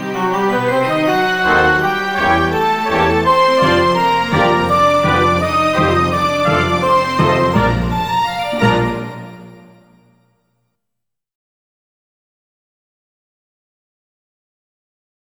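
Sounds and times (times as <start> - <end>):
waltz music: 0.0 - 10.1.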